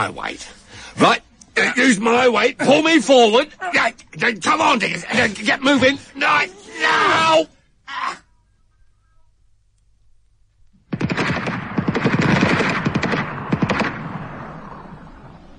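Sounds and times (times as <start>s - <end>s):
speech: 0.0s - 8.2s
rifle gunshots at shooting practice: 10.9s - 15.3s.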